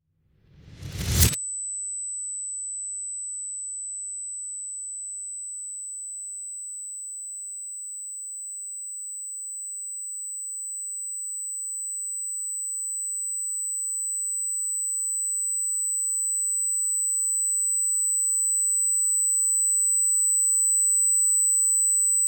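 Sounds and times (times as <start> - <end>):
whoosh: 0.4 - 1.4
vacuum: 0.6 - 1.4.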